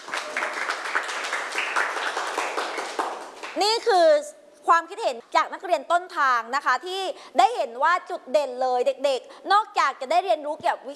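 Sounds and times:
audience applause: 0.0 - 3.6
speech: 3.6 - 10.9.

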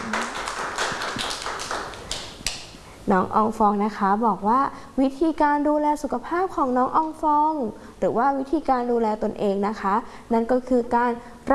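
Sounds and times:
clapping for a child: 0.0 - 2.7
speech: 3.1 - 11.5.

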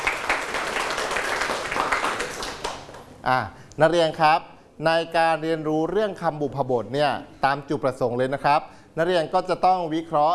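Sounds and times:
classroom applause for student groups: 0.0 - 3.1
speech: 3.2 - 10.3.

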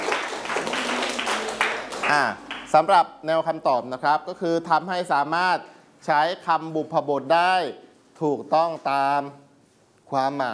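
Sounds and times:
students in a classroom clapping for a classmate's correct answer: 0.0 - 2.8
speech: 2.1 - 9.4, 10.1 - 10.5.

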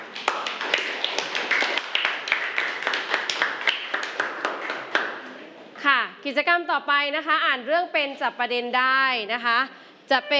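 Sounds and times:
classroom applause: 0.0 - 5.4
speech: 6.3 - 10.3.

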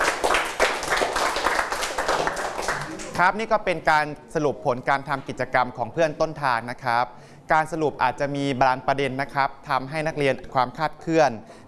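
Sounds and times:
students clapping: 0.0 - 3.2
speech: 3.2 - 11.6.

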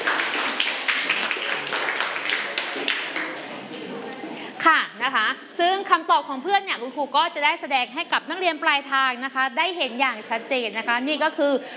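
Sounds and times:
students clapping for the first group: 0.0 - 4.3
speech: 5.9 - 11.7.

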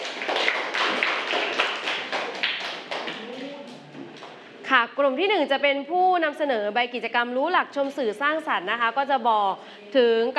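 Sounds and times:
students clapping hands: 0.0 - 4.4
speech: 4.9 - 10.3.

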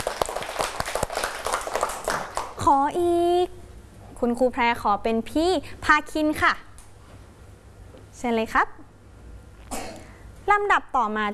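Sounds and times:
schoolchildren clapping for a pupil in class: 0.0 - 2.6
speech: 2.7 - 3.5, 4.2 - 6.7, 8.2 - 8.8, 10.5 - 11.3.

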